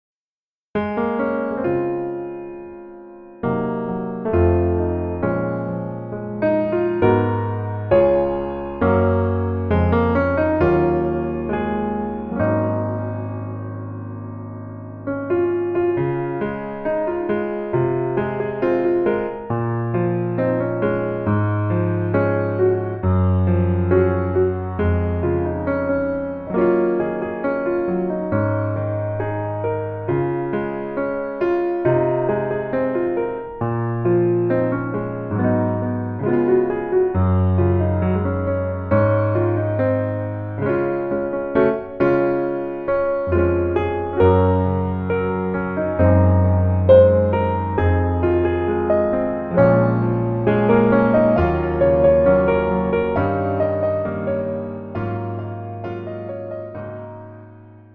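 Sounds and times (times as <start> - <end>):
piano melody backing track: 0.7 - 57.9.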